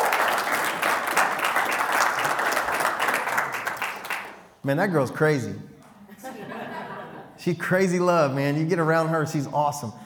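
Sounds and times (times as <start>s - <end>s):
audience clapping: 0.0s - 4.6s
speech: 4.6s - 5.7s, 7.4s - 10.0s
laughter: 6.1s - 7.4s.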